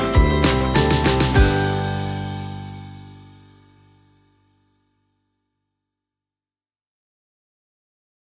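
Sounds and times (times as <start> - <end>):
festive shuffle music without voices: 0.0 - 3.6.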